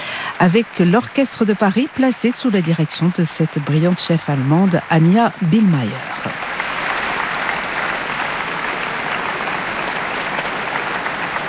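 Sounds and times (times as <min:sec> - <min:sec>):
concert audience applauding at the Philharmonie de Paris: 0:00.0 - 0:11.4
speech: 0:00.4 - 0:06.5.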